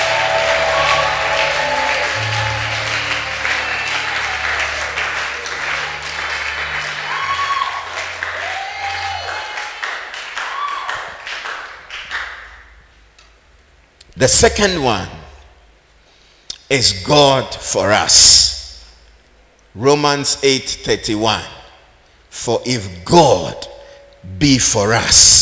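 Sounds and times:
audience shouting: 0.0s - 11.2s
audience clapping: 0.0s - 12.9s
speech: 14.2s - 15.2s, 16.7s - 18.5s, 19.7s - 21.6s, 22.3s - 25.3s.

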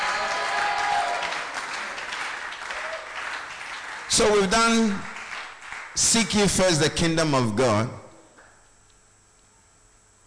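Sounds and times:
audience applause: 0.0s - 6.2s
speech: 4.2s - 5.1s, 6.0s - 8.0s.

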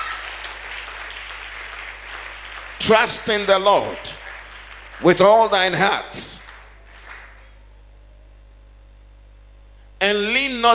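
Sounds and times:
audience clapping: 0.0s - 7.6s
speech: 2.8s - 4.2s, 5.0s - 6.3s, 10.1s - 10.7s.

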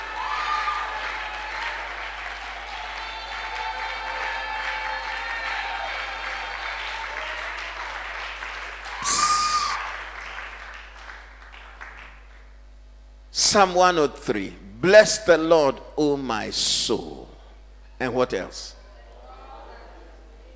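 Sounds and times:
audience clapping: 0.0s - 12.6s
speech: 13.5s - 17.3s, 18.0s - 18.8s.

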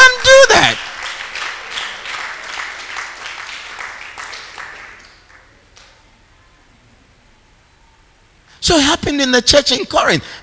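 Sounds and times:
audience clapping: 0.0s - 6.0s
speech: 8.7s - 10.4s.

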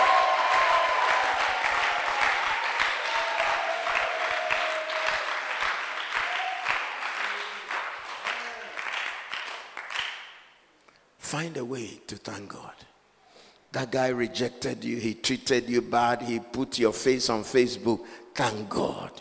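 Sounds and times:
audience clapping: 0.0s - 10.5s
speech: 11.4s - 12.9s, 13.7s - 19.1s.

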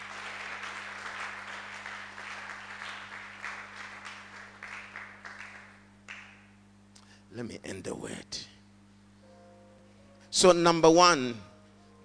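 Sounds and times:
audience clapping hands: 0.0s - 6.6s
speech: 7.4s - 8.5s, 10.4s - 11.5s.

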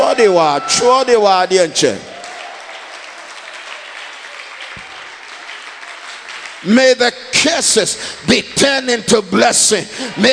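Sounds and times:
speech: 0.2s - 2.1s, 6.6s - 10.3s
audience clapping and applause: 1.8s - 8.0s.

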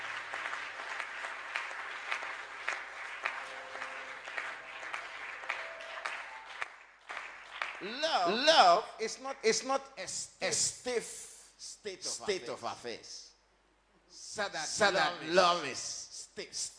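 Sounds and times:
audience clapping: 0.0s - 8.6s
speech: 7.8s - 13.3s, 14.4s - 16.7s.

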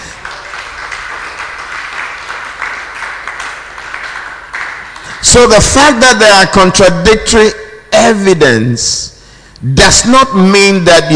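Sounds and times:
audience clapping during a sermon: 0.0s - 5.5s
speech: 5.2s - 11.1s.

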